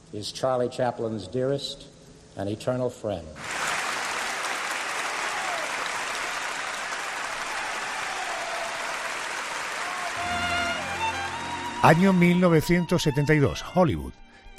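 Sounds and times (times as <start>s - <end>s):
speech: 0.1s - 3.5s, 11.8s - 14.5s
long standing ovation applause from audience: 3.4s - 11.8s.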